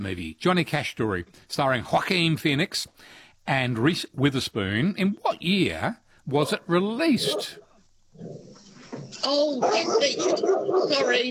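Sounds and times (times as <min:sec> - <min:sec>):
speech: 0:00.0 - 0:07.6, 0:08.2 - 0:11.2
dog barking: 0:07.2 - 0:07.6, 0:09.6 - 0:11.2.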